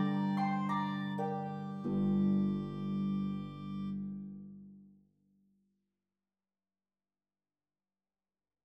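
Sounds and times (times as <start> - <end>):
Bb clarinet: 0.0 - 4.7
pedal harp: 0.0 - 4.8.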